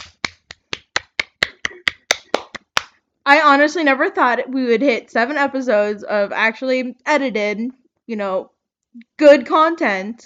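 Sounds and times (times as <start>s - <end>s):
round of applause clapping: 0.0s - 3.0s
speech: 3.3s - 10.2s.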